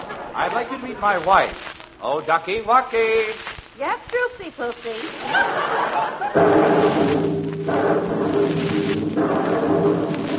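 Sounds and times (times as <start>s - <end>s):
laughter: 0.0s - 1.5s, 5.2s - 6.4s
speech: 0.4s - 7.3s
cannon firing: 6.2s - 10.3s
heavy rumbling roar: 6.4s - 10.3s.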